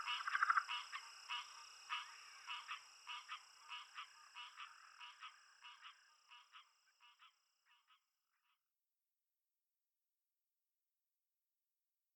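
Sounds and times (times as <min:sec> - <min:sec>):
Southern leopard frog calling: 0:00.0 - 0:08.0
insects: 0:00.0 - 0:08.2.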